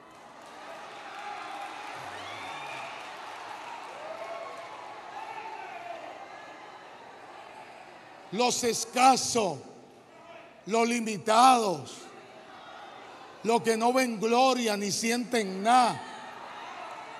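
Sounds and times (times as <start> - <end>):
audience applause: 0.0 - 7.6
speech: 8.3 - 9.7, 10.6 - 12.0, 13.4 - 16.1.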